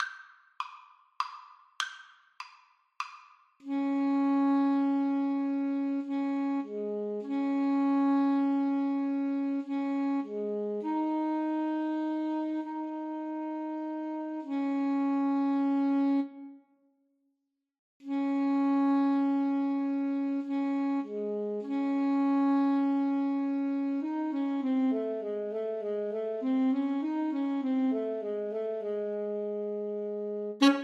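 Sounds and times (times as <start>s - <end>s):
alto saxophone duet: 3.6s - 16.6s, 18.0s - 30.8s.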